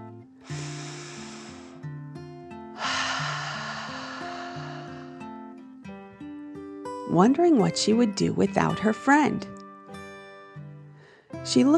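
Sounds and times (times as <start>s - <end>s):
deep breath in and out: 0.4s - 2.0s, 2.8s - 5.6s, 10.9s - 11.4s
gentle melodic music: 2.6s - 11.7s
speech: 7.1s - 9.5s, 11.5s - 11.7s.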